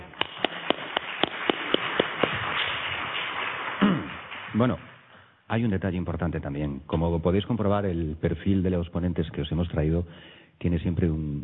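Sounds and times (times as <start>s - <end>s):
audience applause: 0.0s - 5.1s
speech: 4.6s - 4.9s, 5.5s - 11.4s.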